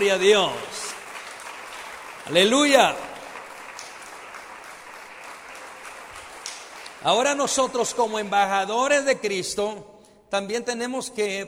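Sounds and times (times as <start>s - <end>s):
speech: 0.0s - 0.8s, 2.3s - 3.1s, 7.0s - 11.4s
audience applause: 0.0s - 8.4s.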